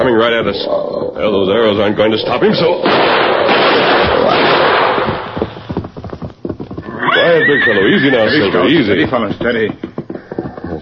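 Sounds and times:
speech: 0:00.0 - 0:04.1, 0:07.3 - 0:09.9
gunshots fired at a charging bear: 0:02.8 - 0:06.1.

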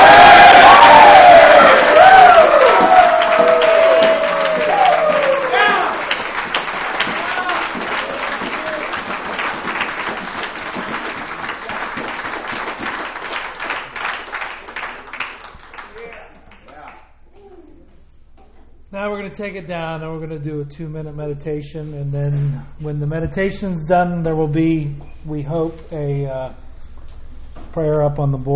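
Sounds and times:
crowd cheering and whooping at a Bridges of Hope gathering in Louisville: 0:00.0 - 0:10.8
crowd applauding at a Bridges of Hope gathering in Louisville: 0:00.0 - 0:17.0
speech: 0:19.4 - 0:26.7, 0:27.7 - 0:28.5.

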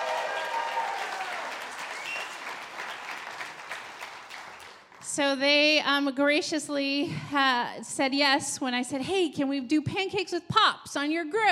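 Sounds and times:
audience applause: 0:00.0 - 0:04.9
faint whistles: 0:01.8 - 0:02.6
speech: 0:05.2 - 0:11.5.

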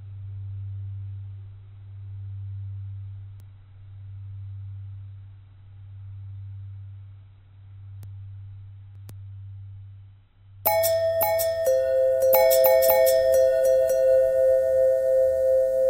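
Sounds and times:
long bell tones with bending: 0:10.7 - 0:15.8.

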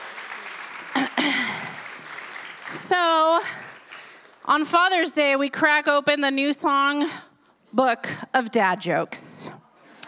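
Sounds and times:
audience applause: 0:00.0 - 0:04.3
speech: 0:02.9 - 0:03.6, 0:04.5 - 0:09.3.

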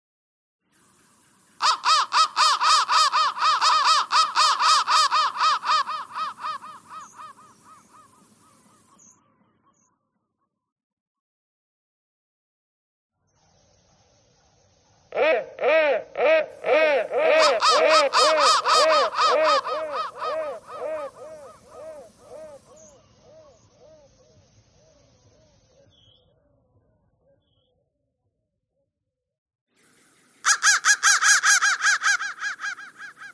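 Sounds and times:
crow thread noise: 0:00.9 - 0:09.0, 0:15.0 - 0:25.6, 0:29.8 - 0:33.3.

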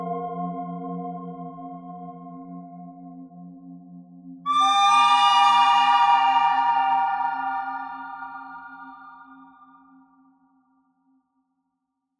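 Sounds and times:
pentatonic melody: 0:04.5 - 0:09.3.

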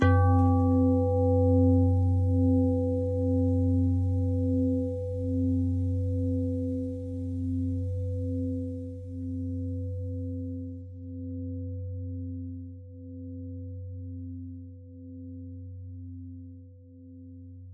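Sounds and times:
long pentatonic bell tones: 0:00.0 - 0:12.2.

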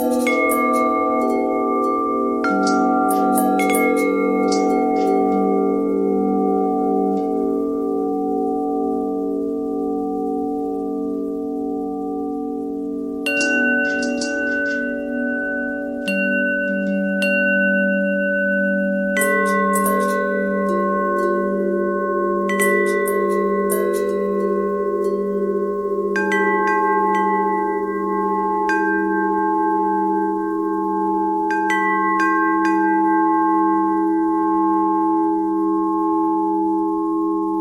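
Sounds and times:
long bell tones: 0:00.0 - 0:37.5.

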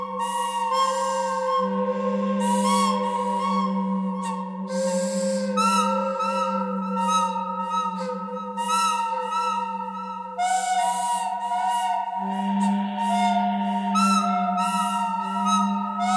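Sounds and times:
pentatonic melody: 0:00.0 - 0:16.1.

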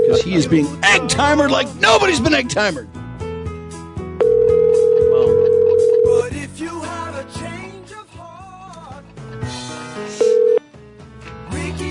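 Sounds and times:
voice with music: 0:00.0 - 0:11.8
speech: 0:00.1 - 0:03.0
electronic telephone ring tone: 0:04.2 - 0:06.2, 0:10.2 - 0:10.6.

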